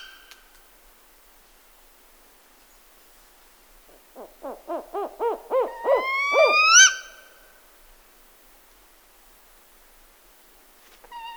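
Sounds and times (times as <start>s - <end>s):
spotted owl calling: 3.9s - 7.2s.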